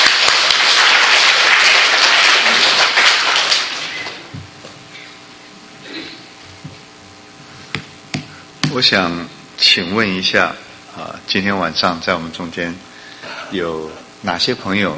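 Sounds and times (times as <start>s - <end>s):
audience applause welcoming a speaker: 0.0s - 4.3s
speech: 8.8s - 12.9s, 13.5s - 14.9s.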